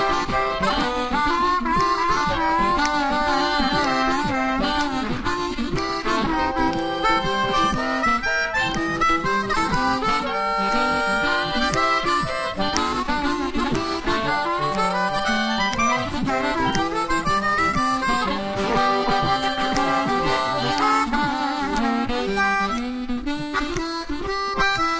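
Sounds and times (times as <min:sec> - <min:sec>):
harmonica riff: 0:00.0 - 0:24.9.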